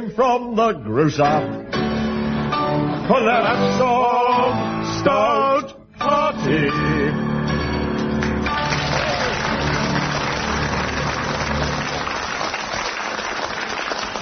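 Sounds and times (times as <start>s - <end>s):
speech: 0.1s - 1.8s, 2.7s - 7.3s
studio audience applauding on Just a Minute: 8.0s - 14.2s.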